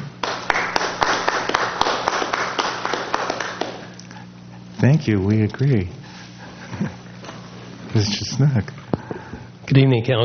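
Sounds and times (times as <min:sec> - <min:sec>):
low steady hum: 0:00.0 - 0:10.2
audience applause: 0:00.2 - 0:04.0
speech: 0:04.8 - 0:06.0, 0:06.8 - 0:07.0, 0:07.9 - 0:08.8, 0:09.7 - 0:10.2.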